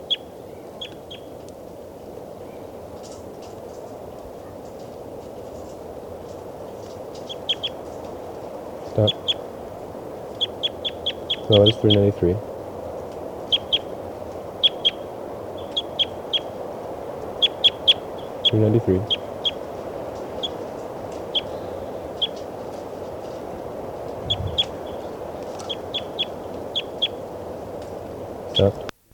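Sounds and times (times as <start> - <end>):
bird calling with high-pitched chirps: 0.0 - 1.3, 7.2 - 8.1, 8.9 - 9.5, 10.4 - 12.1, 13.5 - 13.9, 14.6 - 16.6, 17.4 - 19.6, 20.4 - 22.5, 24.2 - 27.3
speech: 9.0 - 9.2, 11.5 - 12.5, 18.6 - 19.2, 28.6 - 28.8.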